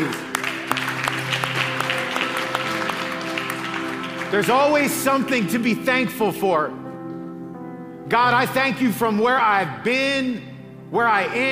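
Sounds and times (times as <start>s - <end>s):
audience clapping: 0.0s - 6.1s
speech: 4.3s - 6.8s, 8.1s - 11.5s.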